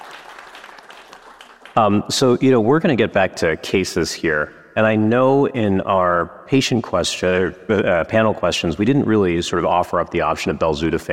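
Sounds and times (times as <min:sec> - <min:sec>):
audience applause: 0:00.0 - 0:01.9
speech: 0:01.8 - 0:11.1.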